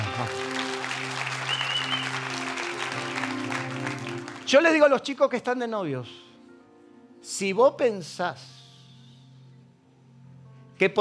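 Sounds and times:
audience applause: 0:00.0 - 0:04.9
speech: 0:04.5 - 0:06.3, 0:07.3 - 0:08.6, 0:10.8 - 0:10.9.

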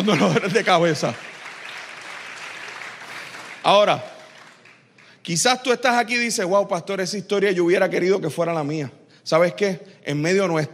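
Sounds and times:
speech: 0:00.0 - 0:01.3, 0:03.6 - 0:04.1, 0:05.2 - 0:10.7
audience applause: 0:00.0 - 0:05.2.

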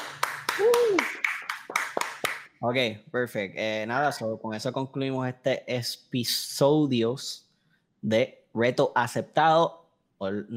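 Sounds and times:
slow sparse applause for a guest: 0:00.0 - 0:02.5
speech: 0:02.6 - 0:07.4, 0:08.0 - 0:10.5.

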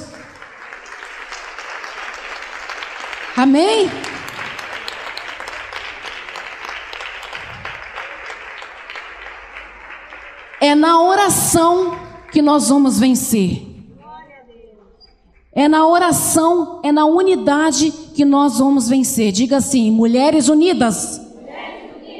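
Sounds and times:
audience applauding: 0:00.0 - 0:12.5
speech: 0:03.4 - 0:04.1, 0:10.7 - 0:13.7, 0:15.6 - 0:21.2.

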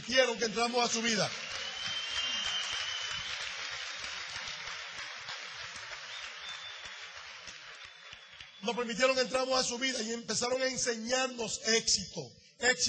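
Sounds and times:
audience applause: 0:00.0 - 0:08.6
speech: 0:00.1 - 0:01.5, 0:08.6 - 0:12.8.

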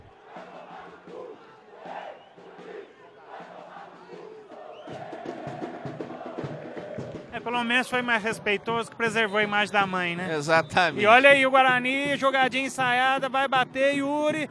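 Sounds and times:
large football crowd chanting in unison: 0:00.0 - 0:09.6
speech: 0:07.4 - 0:14.5.

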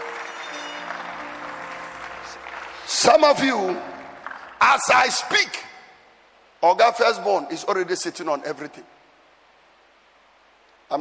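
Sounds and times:
audience clapping: 0:00.0 - 0:05.2
speech: 0:03.0 - 0:03.9, 0:04.6 - 0:05.6, 0:06.6 - 0:09.0.

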